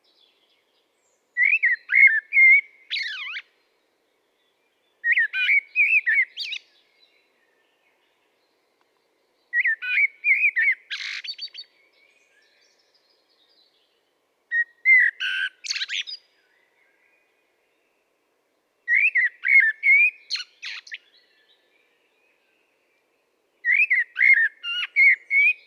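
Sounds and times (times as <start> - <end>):
Common blackbird singing: 0.1 - 3.5, 4.4 - 8.4, 9.5 - 13.9, 14.5 - 17.1, 18.9 - 22.6, 23.6 - 25.6.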